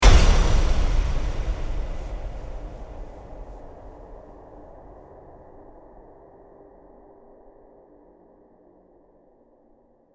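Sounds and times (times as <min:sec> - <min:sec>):
hard hit on metal with reverb trail: 0:00.0 - 0:06.2.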